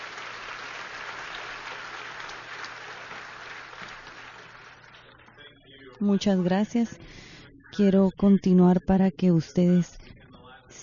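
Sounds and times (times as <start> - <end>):
audience applause: 0.0 - 5.1
speech: 6.0 - 10.0.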